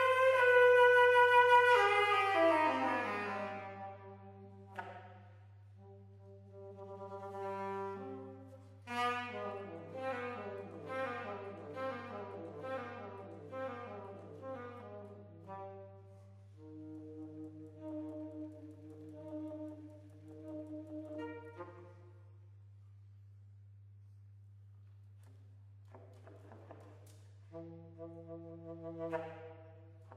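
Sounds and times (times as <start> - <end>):
saxophone playing blues: 0.0 - 4.7, 5.8 - 22.0.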